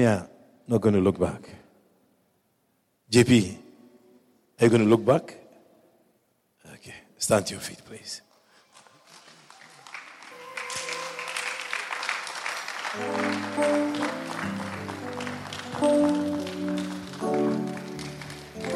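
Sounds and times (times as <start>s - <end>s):
speech: 0.0s - 1.6s, 3.1s - 3.6s, 4.6s - 5.4s, 6.8s - 8.3s, 13.0s - 14.1s, 15.8s - 16.2s
audience clapping rhythmically: 8.8s - 18.7s
sustained keyboard or organ chords: 12.9s - 18.7s.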